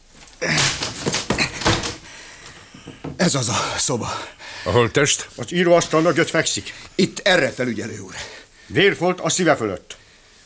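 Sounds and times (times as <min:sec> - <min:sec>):
locked door being forced open: 0:00.0 - 0:03.4
speech: 0:03.2 - 0:10.0.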